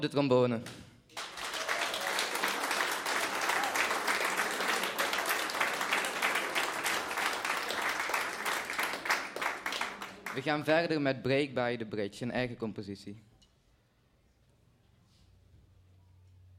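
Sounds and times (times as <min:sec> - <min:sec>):
speech: 0:00.0 - 0:00.9, 0:10.4 - 0:13.3
audience applause for a musician: 0:01.1 - 0:10.5.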